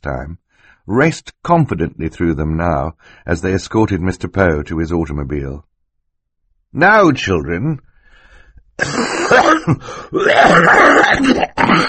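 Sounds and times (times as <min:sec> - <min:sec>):
speech: 0:00.0 - 0:05.7, 0:06.7 - 0:07.9, 0:08.8 - 0:11.8
person coughing into a handkerchief with throat clearing: 0:08.8 - 0:11.8.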